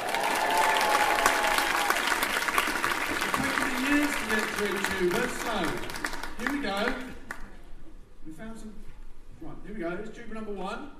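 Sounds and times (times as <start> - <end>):
crowd cheering: 0.0 - 5.8
crowd applauding: 0.0 - 7.5
speech: 4.3 - 7.1, 8.3 - 10.9.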